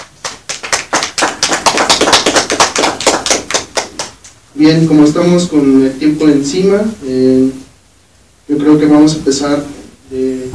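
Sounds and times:
audience applause for speakers: 0.0s - 4.2s
speech: 4.6s - 7.6s, 8.5s - 10.5s.

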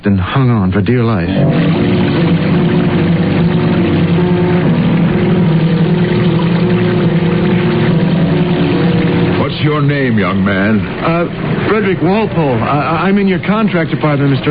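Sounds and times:
speech: 0.0s - 2.7s, 9.8s - 14.4s
plane engines failing over the Atlantic: 1.1s - 14.4s.

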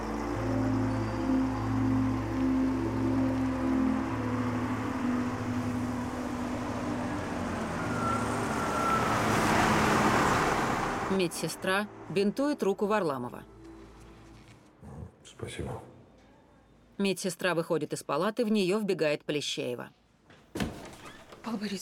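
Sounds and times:
truck with Kronos logo driving out of warehouse: 0.0s - 14.3s
speech: 11.2s - 13.5s, 15.4s - 15.9s, 17.0s - 20.7s, 21.5s - 21.8s.

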